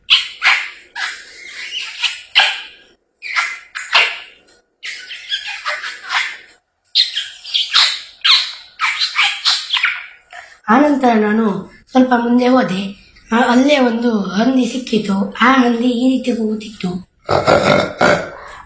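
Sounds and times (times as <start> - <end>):
parrot squawking: 0.0 - 10.3
speech: 10.7 - 18.2.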